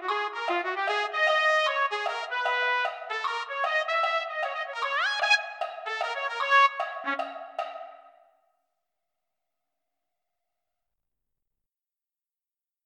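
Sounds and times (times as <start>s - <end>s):
trumpet: 0.0s - 8.0s.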